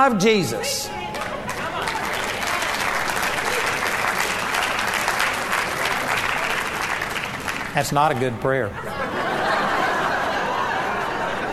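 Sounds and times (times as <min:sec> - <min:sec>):
speech: 0:00.0 - 0:01.1, 0:07.8 - 0:09.4
audience clapping: 0:00.0 - 0:08.6
laughter: 0:00.4 - 0:11.5.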